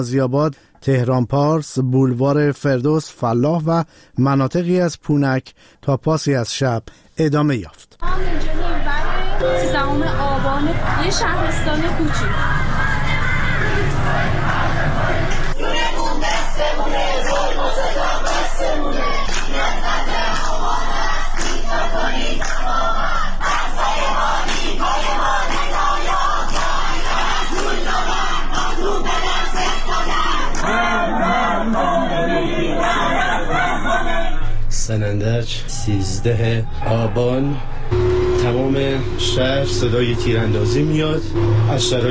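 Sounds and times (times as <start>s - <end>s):
speech: 0.0s - 8.5s, 9.4s - 12.8s, 34.9s - 42.0s
protest crowd chanting slogans: 8.1s - 34.5s.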